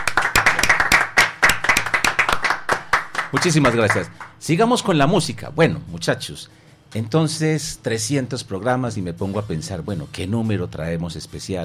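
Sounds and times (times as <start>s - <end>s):
audience applause: 0.0s - 4.3s
speech: 3.3s - 11.6s.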